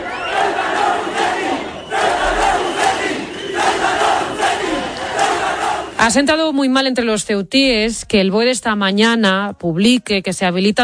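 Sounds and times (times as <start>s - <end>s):
protesters chanting and shouting: 0.0s - 6.5s
speech: 6.1s - 10.8s.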